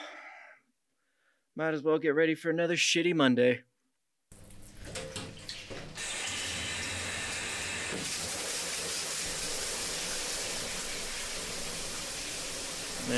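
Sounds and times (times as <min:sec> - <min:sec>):
speech: 0:01.6 - 0:03.7
shower water pouring down on a head: 0:04.3 - 0:13.1.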